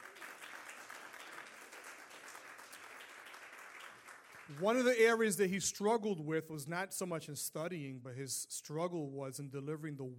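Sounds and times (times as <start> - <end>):
crowd applauding: 0.0 - 5.4
speech: 4.5 - 10.1.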